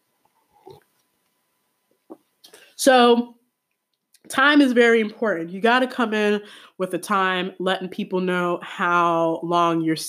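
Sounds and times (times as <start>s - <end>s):
person sipping a drink: 0.4s - 0.9s
speech: 2.8s - 3.4s, 4.3s - 10.0s.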